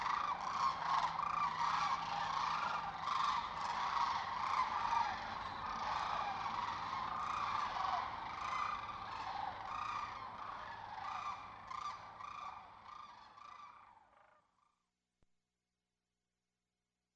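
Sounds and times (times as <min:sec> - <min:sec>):
crane: 0:00.2 - 0:12.9.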